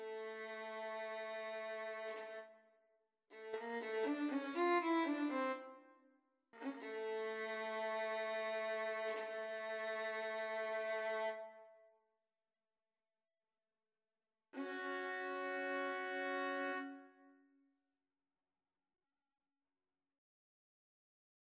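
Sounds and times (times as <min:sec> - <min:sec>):
violin and cello duet: 0:00.0 - 0:02.5, 0:03.3 - 0:05.7, 0:06.6 - 0:11.6, 0:14.6 - 0:17.0.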